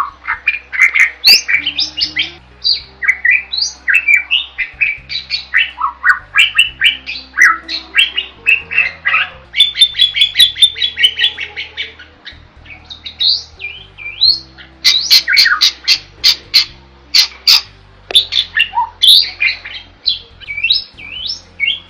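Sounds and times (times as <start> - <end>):
bird singing loudly in a masteran training recording: 0.0 - 21.8.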